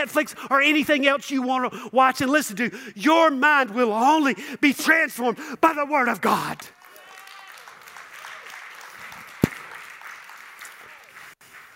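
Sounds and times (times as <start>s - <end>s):
speech: 0.0s - 6.8s
crowd clapping: 6.6s - 11.7s.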